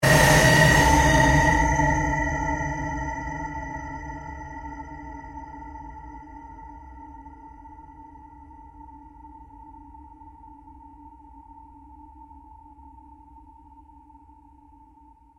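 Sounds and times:
long synthesized drone: 0.0s - 6.4s.

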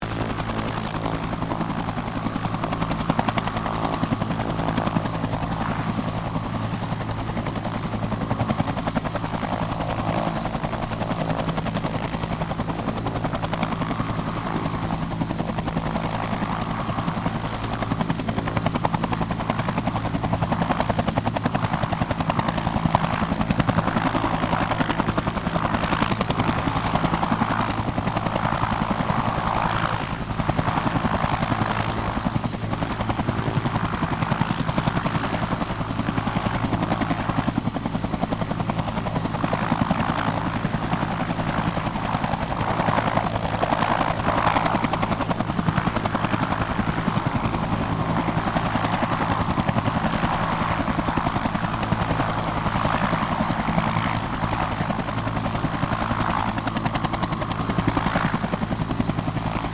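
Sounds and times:
Bell UH-1 Iroquois helicopter idling: 0.0s - 59.7s.

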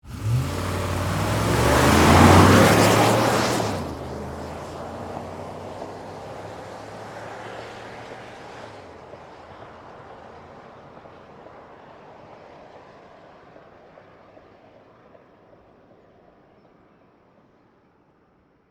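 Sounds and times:
Ford Expedition SUV driving away fast: 0.0s - 10.4s.

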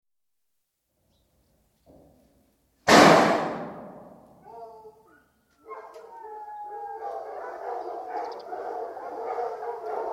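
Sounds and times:
hunting hounds barking and baying in hunt kennels at feeding time: 4.4s - 10.1s.

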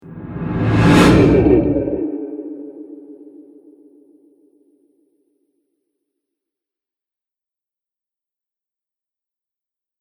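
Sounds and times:
monster trailer hit: 0.1s - 2.8s.

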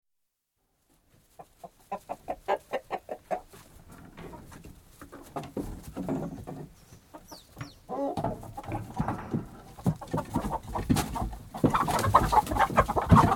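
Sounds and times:
chicken squawking and clucking: 1.2s - 4.5s, 6.2s - 13.3s.

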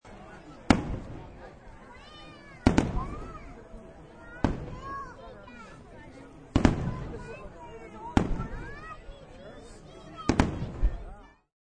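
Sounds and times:
crowd: 0.0s - 11.5s
fireworks exploding: 0.6s - 1.7s, 2.6s - 3.6s, 4.3s - 5.8s, 6.5s - 8.9s, 10.2s - 11.1s.

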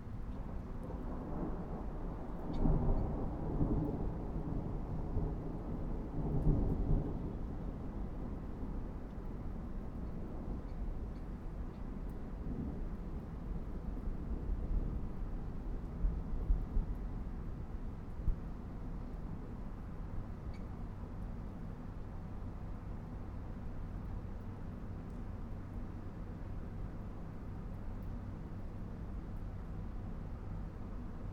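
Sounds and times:
city background noise: 0.0s - 31.3s
thunderstorm: 0.4s - 10.7s, 12.3s - 19.5s.

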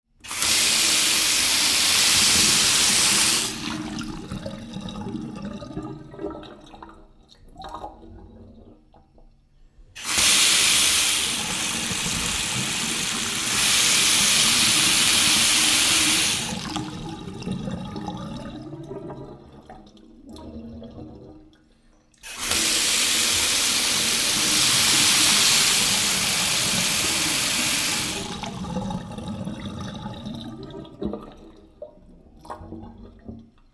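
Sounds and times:
powerful water from taps: 0.3s - 5.3s, 10.0s - 19.4s, 22.2s - 31.7s.

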